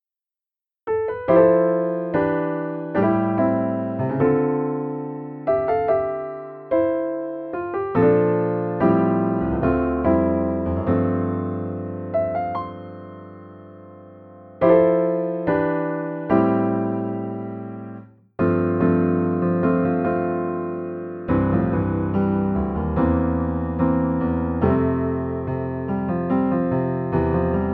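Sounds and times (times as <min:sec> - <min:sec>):
piano: 0:00.0 - 0:27.7.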